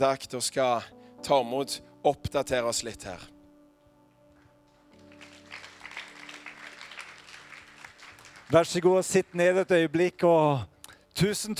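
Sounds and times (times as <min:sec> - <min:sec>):
speech: 0:00.0 - 0:03.4, 0:08.5 - 0:11.5
audience applause: 0:05.0 - 0:09.7.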